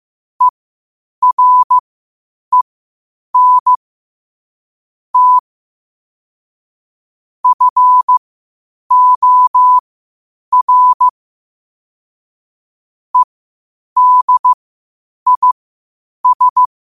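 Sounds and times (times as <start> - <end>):
morse code at 5 wpm: 1.2 - 1.8, 3.4 - 3.8, 5.2 - 5.4, 7.4 - 8.2, 8.9 - 9.8, 10.5 - 11.1, 14.0 - 14.6, 15.3 - 15.6, 16.2 - 16.7.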